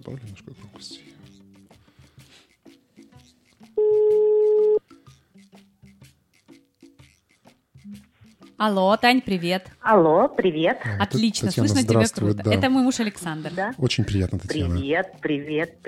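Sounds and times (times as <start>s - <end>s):
speech: 0.0s - 1.2s, 8.6s - 15.8s
telephone ringback tone while dialing: 3.8s - 4.8s.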